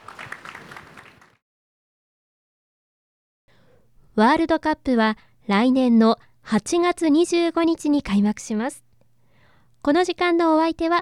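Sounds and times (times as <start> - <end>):
audience applause: 0.0 - 1.4
speech: 4.2 - 8.8, 9.8 - 11.0.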